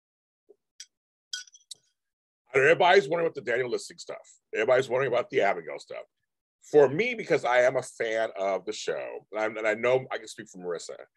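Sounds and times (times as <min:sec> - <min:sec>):
glass clinking while getting water: 0:00.8 - 0:01.8
speech: 0:02.5 - 0:11.1.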